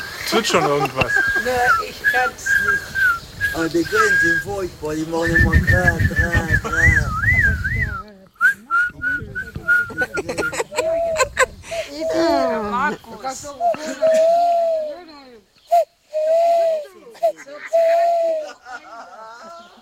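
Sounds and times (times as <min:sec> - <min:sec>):
laughter: 0:00.2 - 0:02.8, 0:03.8 - 0:04.4, 0:05.9 - 0:07.2, 0:09.6 - 0:12.7, 0:13.6 - 0:15.0, 0:16.6 - 0:19.8
speech: 0:00.3 - 0:06.7, 0:12.9 - 0:14.6
person whistling an imitation of an owl call: 0:01.0 - 0:04.6, 0:05.2 - 0:11.3, 0:13.6 - 0:18.6.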